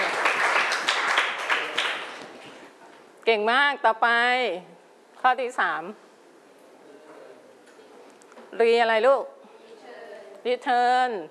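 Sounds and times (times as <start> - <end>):
applause for a group of children during a lesson on reducing waste: 0.0 - 2.6
speech: 3.2 - 6.0, 8.5 - 9.3, 10.4 - 11.2.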